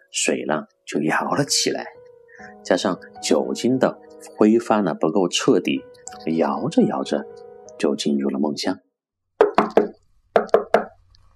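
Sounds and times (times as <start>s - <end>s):
speech: 0.1s - 8.8s
urgent loud hollow knocking on a door: 9.4s - 11.0s.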